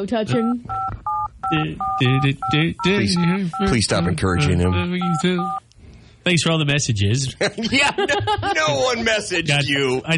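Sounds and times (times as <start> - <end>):
speech: 0.0 - 5.6, 6.2 - 10.1
touch-tone telephone keypad beeps forming a tune: 0.3 - 5.6
laughter: 7.4 - 9.1.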